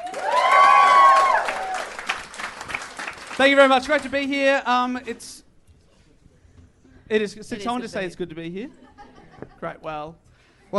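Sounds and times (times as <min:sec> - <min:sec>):
audience applause: 0:00.0 - 0:04.3
speech: 0:03.4 - 0:05.4, 0:07.1 - 0:08.8, 0:09.6 - 0:10.7.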